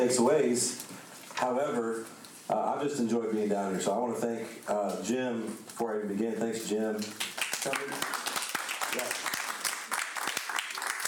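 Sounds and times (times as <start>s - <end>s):
speech: 0.0s - 8.2s
audience clapping: 7.0s - 11.0s.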